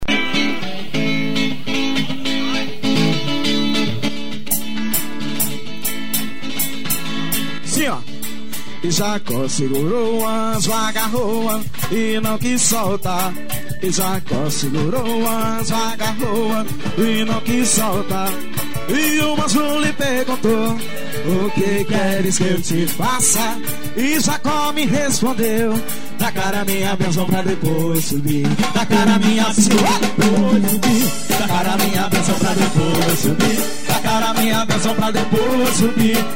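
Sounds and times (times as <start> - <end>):
live worship music: 0.0 - 36.3.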